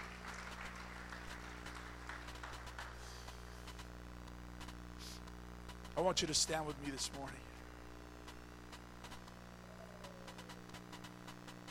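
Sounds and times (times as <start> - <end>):
audience clapping hands: 0.0 - 3.8
steady low electrical hum: 0.0 - 11.6
speech: 6.0 - 7.6.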